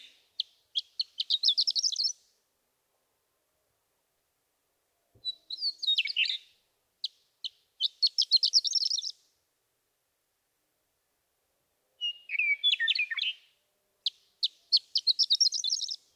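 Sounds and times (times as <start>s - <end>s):
western meadowlark singing: 0.0s - 2.3s, 5.2s - 9.2s, 11.9s - 16.1s.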